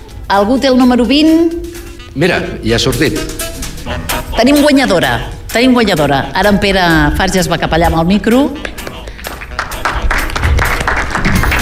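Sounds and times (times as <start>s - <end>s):
speech: 0.3s - 8.7s
audience applause: 8.8s - 11.6s.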